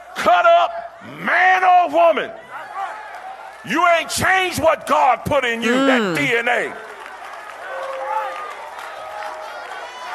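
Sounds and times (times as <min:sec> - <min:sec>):
speech: 0:00.2 - 0:02.4, 0:03.6 - 0:06.9
crowd shouting and cheering: 0:05.7 - 0:06.3.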